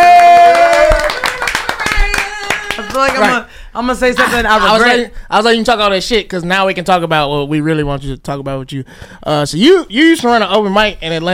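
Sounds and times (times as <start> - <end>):
audience clapping: 0.0 - 3.5
speech: 3.0 - 11.3.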